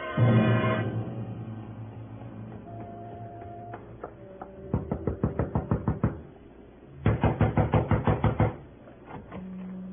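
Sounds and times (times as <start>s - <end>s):
low hum: 0.2s - 5.5s
light rapping knocks on a door: 2.5s - 6.2s, 7.0s - 8.6s.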